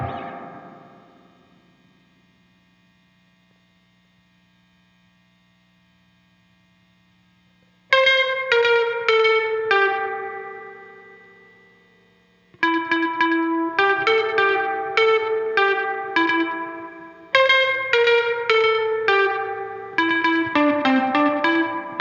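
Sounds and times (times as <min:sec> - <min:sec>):
guitar overdub: 0:00.0 - 0:02.0, 0:07.9 - 0:21.9.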